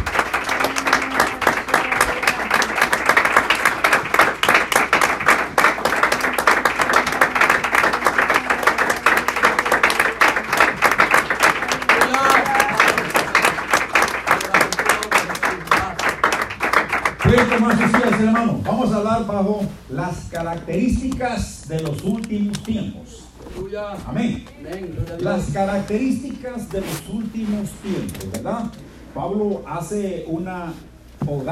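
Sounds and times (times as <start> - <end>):
audience applause: 0.0 - 18.6
speech: 19.1 - 23.1, 23.7 - 31.4.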